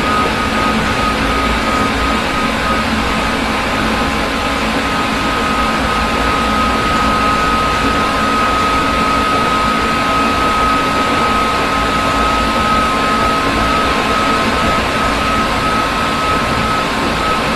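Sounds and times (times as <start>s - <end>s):
103 series rapid train: 0.0s - 17.5s.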